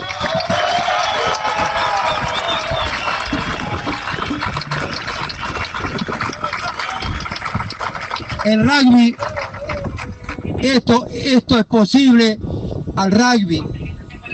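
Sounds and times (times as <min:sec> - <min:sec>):
audience applause: 0:00.0 - 0:10.5
speech: 0:08.5 - 0:09.3, 0:10.6 - 0:13.7.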